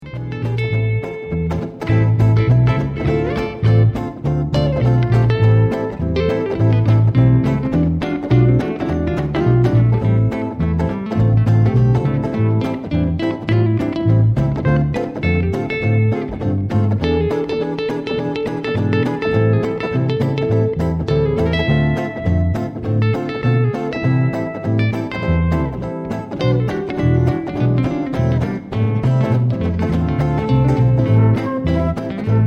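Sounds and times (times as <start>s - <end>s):
gypsy jazz: 0.0s - 32.4s.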